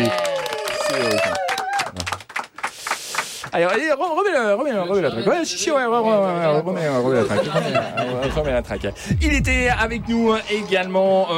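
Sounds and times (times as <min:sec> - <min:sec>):
applause: 0:00.0 - 0:03.9
speech: 0:03.6 - 0:11.3
laughter: 0:04.6 - 0:05.8, 0:06.8 - 0:10.1.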